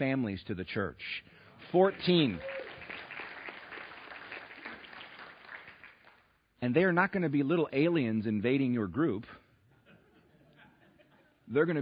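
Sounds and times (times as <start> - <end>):
speech: 0.0 - 2.6, 6.6 - 9.4, 11.5 - 11.8
crowd applauding: 1.6 - 6.3
laughter: 9.7 - 11.5.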